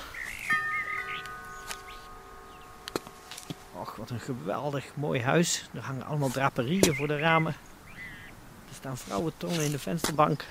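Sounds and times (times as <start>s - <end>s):
doorbell being rung: 0.5s - 4.3s
speech: 4.0s - 7.7s, 8.8s - 10.4s.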